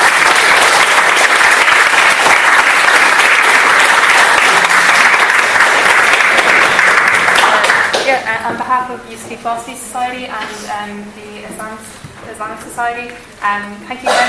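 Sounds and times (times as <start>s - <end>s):
audience applause: 0.0s - 8.2s
speech: 8.5s - 11.2s, 11.8s - 14.2s.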